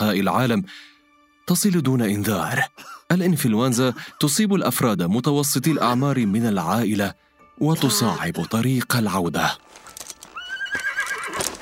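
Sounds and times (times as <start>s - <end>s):
speech: 0.1s - 0.9s, 1.5s - 9.7s
horse neighing: 7.7s - 8.4s, 10.3s - 11.5s
hooves of horse carriage: 9.6s - 11.5s.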